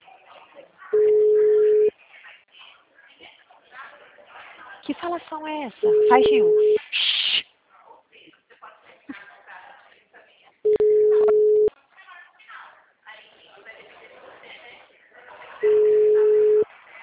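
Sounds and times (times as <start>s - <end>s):
telephone call beeps: 1.0s - 1.9s, 5.8s - 6.8s, 10.7s - 11.7s, 15.6s - 16.6s
speech: 5.1s - 6.8s.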